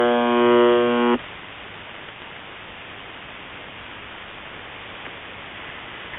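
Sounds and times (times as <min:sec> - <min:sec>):
buzzer: 0:00.0 - 0:01.2.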